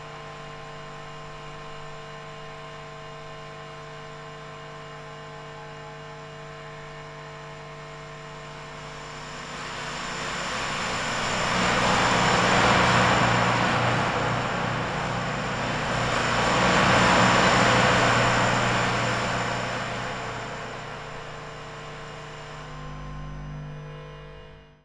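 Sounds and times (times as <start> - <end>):
electromagnetic field buzz: 5.8 - 24.8.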